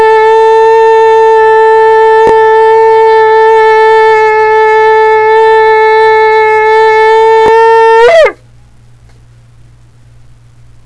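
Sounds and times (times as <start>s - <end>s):
long shofar blast: 0.0s - 8.4s.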